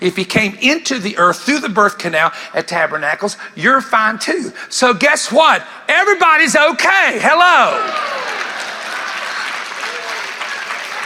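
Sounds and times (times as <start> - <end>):
speech: 0.0 - 8.4
clapping: 7.8 - 11.0.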